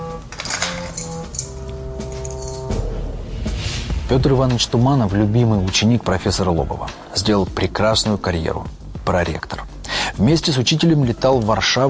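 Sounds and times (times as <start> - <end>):
humming tonal background: 0.0 - 5.7
bunch of keys jangling as it is handed back: 0.3 - 2.8
speech: 4.1 - 9.6, 10.2 - 11.8.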